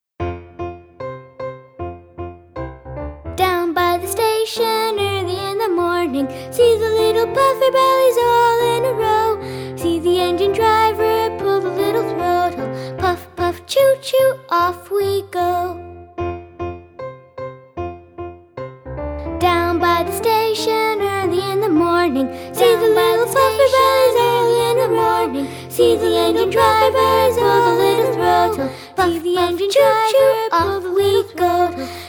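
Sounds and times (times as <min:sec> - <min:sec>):
person singing: 0:03.4 - 0:15.9, 0:19.4 - 0:32.0.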